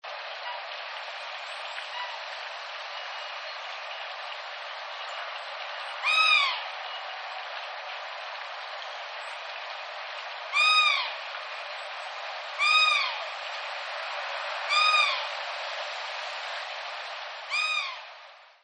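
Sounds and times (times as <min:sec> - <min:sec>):
steady hiss: 0:00.0 - 0:18.6
black swan bugling call: 0:06.0 - 0:06.7, 0:10.5 - 0:11.2, 0:12.6 - 0:13.2, 0:14.7 - 0:15.3, 0:17.5 - 0:18.0.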